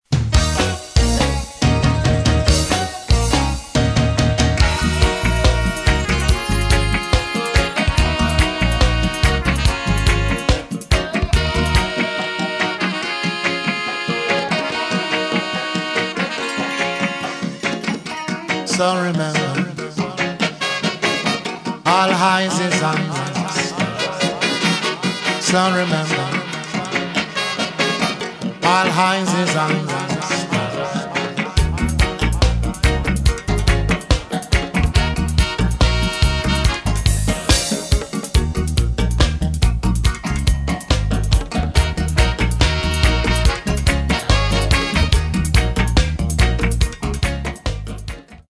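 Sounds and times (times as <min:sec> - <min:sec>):
dub music: 0:00.1 - 0:48.4.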